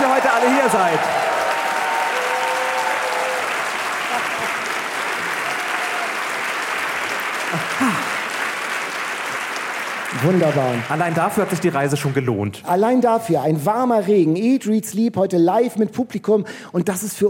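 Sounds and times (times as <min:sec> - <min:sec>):
audience applause: 0:00.0 - 0:12.1
speech: 0:00.7 - 0:01.2, 0:10.2 - 0:17.2.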